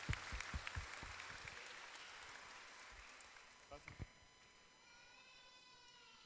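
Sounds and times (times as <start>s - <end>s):
applause: 0.0s - 4.0s.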